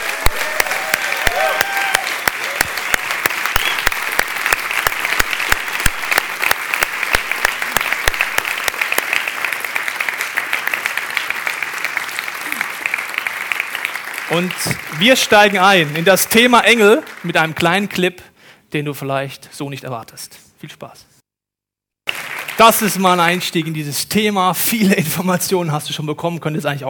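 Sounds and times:
audience applause: 0:00.0 - 0:17.6, 0:22.1 - 0:23.0
speech: 0:14.4 - 0:21.1, 0:22.6 - 0:26.8.

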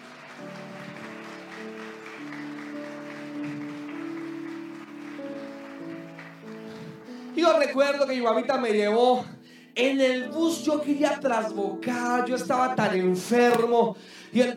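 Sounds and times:
audience applause: 0:00.0 - 0:07.4
speech: 0:07.4 - 0:14.5.

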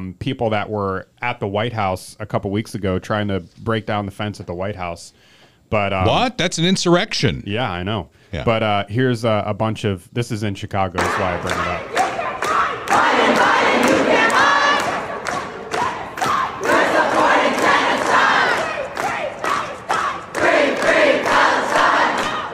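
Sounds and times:
speech: 0:00.0 - 0:12.0
protest crowd clapping in unison: 0:11.0 - 0:22.5.

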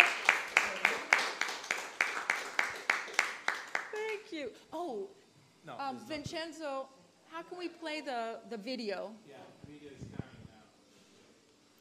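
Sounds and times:
audience applause: 0:00.0 - 0:04.3
speech: 0:04.4 - 0:09.8.

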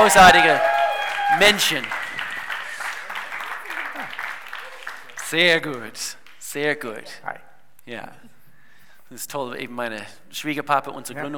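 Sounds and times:
speech: 0:00.0 - 0:00.7, 0:01.3 - 0:02.0, 0:05.3 - 0:08.3, 0:09.1 - 0:11.3
audience applause: 0:00.0 - 0:06.4.

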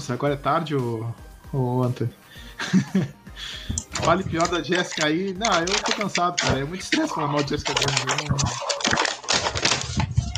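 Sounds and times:
speech: 0:00.0 - 0:09.0
laughter: 0:02.6 - 0:03.9
plastic clattering near microphone: 0:03.7 - 0:10.3.

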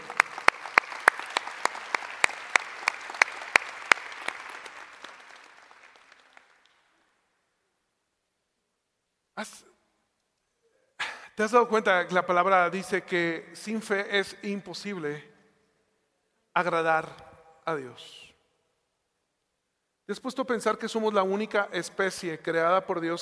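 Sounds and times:
audience applause: 0:00.0 - 0:07.0
speech: 0:09.4 - 0:09.7, 0:11.4 - 0:15.3, 0:16.6 - 0:18.3, 0:20.1 - 0:23.2.

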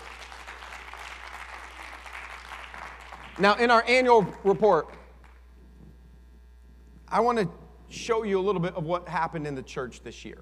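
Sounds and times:
audience clapping: 0:00.0 - 0:05.5
speech: 0:03.4 - 0:05.0, 0:07.1 - 0:10.4.

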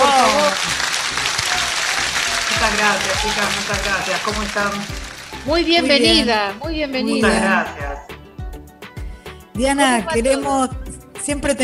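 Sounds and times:
applause: 0:00.0 - 0:06.2
speech: 0:02.7 - 0:08.1, 0:09.6 - 0:11.6.

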